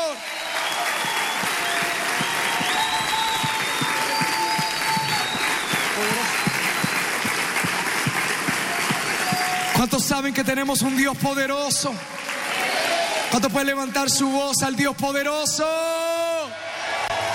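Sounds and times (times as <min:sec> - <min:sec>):
loud applause from a large audience: 0:00.0 - 0:10.8, 0:11.4 - 0:13.5, 0:16.7 - 0:17.3
scattered voices and cheers: 0:00.0 - 0:13.8
speech: 0:09.8 - 0:12.3, 0:13.3 - 0:15.9.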